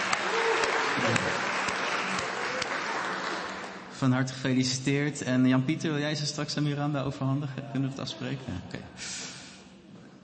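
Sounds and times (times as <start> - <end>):
congregation applauding in church for a 12.5-year wedding anniversary: 0.0 - 4.0
speech: 4.0 - 9.3.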